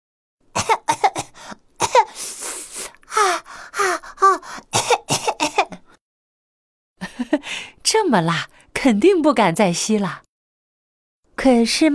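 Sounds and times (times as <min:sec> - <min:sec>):
person imitating a fire-breathing dragon coughing: 0:00.6 - 0:02.6, 0:04.2 - 0:06.0
breathy sound: 0:00.9 - 0:04.8
speech: 0:08.0 - 0:10.2, 0:11.4 - 0:11.9.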